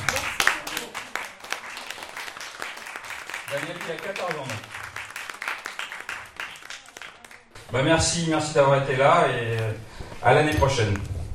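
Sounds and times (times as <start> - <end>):
audience applause: 0.0 - 7.6
speech: 3.5 - 4.8, 7.7 - 11.1.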